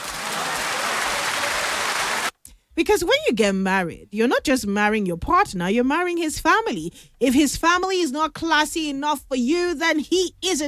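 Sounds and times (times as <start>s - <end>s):
audience applause: 0.0s - 2.3s
speech: 2.8s - 10.6s.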